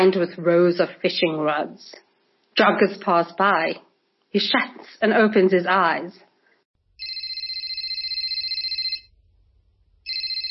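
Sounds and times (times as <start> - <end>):
speech: 0.0 - 2.0, 2.6 - 6.3
telephone ringing: 7.0 - 9.1, 10.1 - 10.4.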